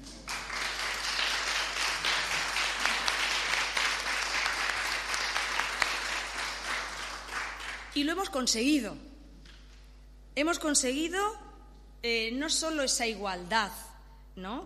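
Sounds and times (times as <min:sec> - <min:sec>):
audience applause: 0:00.0 - 0:07.9
speech: 0:08.0 - 0:09.1, 0:10.4 - 0:11.4, 0:12.0 - 0:13.8, 0:14.4 - 0:14.6.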